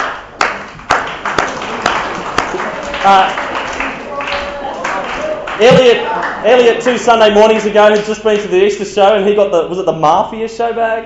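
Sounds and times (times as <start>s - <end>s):
audience applause: 0.4s - 6.7s
speech: 3.0s - 3.4s, 5.6s - 11.0s.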